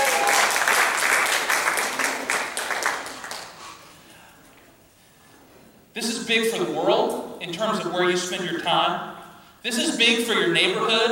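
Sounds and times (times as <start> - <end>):
crowd applause: 0.0 - 3.9
speech: 6.0 - 11.0.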